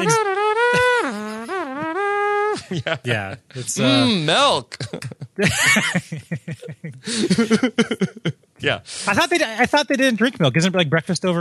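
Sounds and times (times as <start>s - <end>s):
speech: 0.0s - 0.3s, 2.7s - 11.3s
laughter: 0.0s - 1.5s, 2.6s - 8.3s, 9.1s - 10.0s
voice imitating the droning hum of drones: 0.0s - 2.0s, 2.6s - 4.2s.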